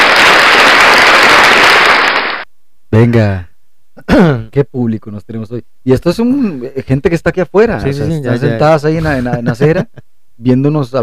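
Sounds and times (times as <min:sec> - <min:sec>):
applause: 0:00.0 - 0:02.5
speech: 0:03.0 - 0:11.0
laughter: 0:09.0 - 0:10.0.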